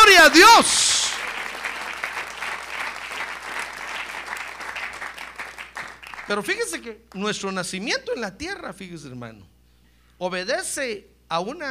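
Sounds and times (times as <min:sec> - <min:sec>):
audience applauding: 0:00.0 - 0:06.4
speech: 0:00.2 - 0:00.9, 0:06.3 - 0:09.6, 0:10.2 - 0:11.6.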